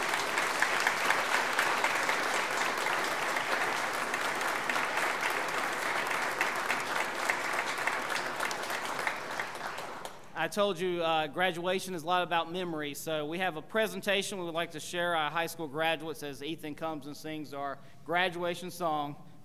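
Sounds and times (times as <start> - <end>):
applause from a large crowd: 0.0 - 10.3
speech: 10.4 - 19.2.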